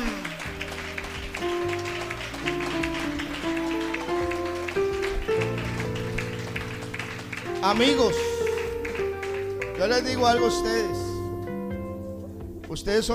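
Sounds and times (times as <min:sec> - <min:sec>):
audience applause: 0:00.0 - 0:10.9
sustained keyboard chords: 0:00.0 - 0:13.1
speech: 0:07.6 - 0:08.3, 0:09.8 - 0:11.0, 0:12.7 - 0:13.1.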